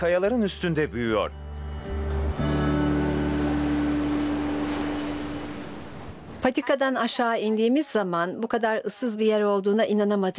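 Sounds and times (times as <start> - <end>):
speech: 0.0 - 2.0, 6.4 - 10.3
Pacific Ocean waves washing over the sand of a small beach: 3.0 - 6.5.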